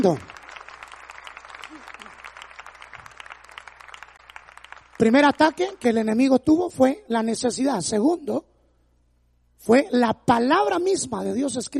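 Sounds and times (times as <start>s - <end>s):
speech: 0.0s - 0.3s, 5.0s - 8.5s, 9.6s - 11.7s
audience applause: 0.0s - 5.8s.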